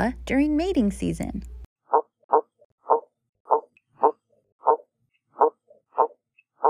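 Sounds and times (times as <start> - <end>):
speech: 0.0 - 2.0
piranha barking: 1.9 - 6.6.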